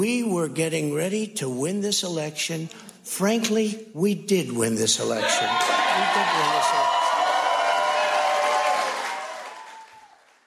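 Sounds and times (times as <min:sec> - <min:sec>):
speech: 0:00.0 - 0:07.0
crowd applause: 0:05.2 - 0:10.4.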